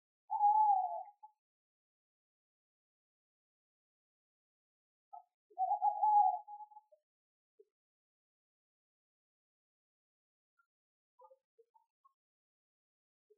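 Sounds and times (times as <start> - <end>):
owl: 0.3 - 1.4, 5.2 - 7.0.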